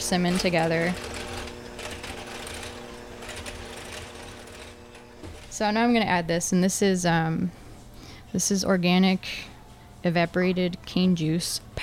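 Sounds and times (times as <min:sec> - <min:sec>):
electric hand mixer whirring: 0:00.0 - 0:06.1
speech: 0:00.1 - 0:01.1, 0:05.6 - 0:07.6, 0:08.3 - 0:11.8.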